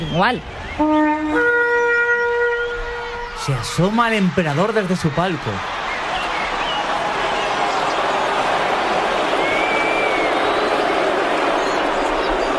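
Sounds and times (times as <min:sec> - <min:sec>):
speech: 0:00.1 - 0:01.5, 0:03.4 - 0:05.8
crowd in the Hippodrome of Constantinople roaring angrily at Emperor Justinian: 0:02.8 - 0:12.5.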